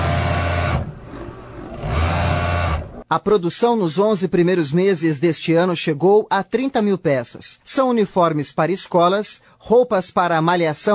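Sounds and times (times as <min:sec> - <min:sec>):
sewing machine running: 0:00.0 - 0:03.0
speech: 0:03.1 - 0:10.9.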